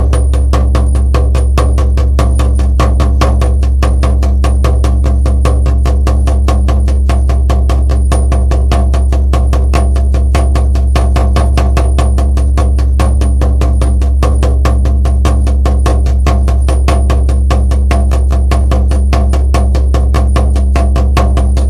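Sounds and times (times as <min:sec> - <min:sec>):
fast drumming: 0:00.0 - 0:21.6.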